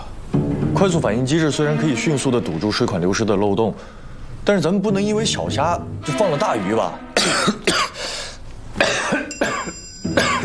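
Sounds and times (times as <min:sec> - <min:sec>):
speech: 0:00.8 - 0:07.6
dry rasping coughs from an itchy throat: 0:07.2 - 0:10.4.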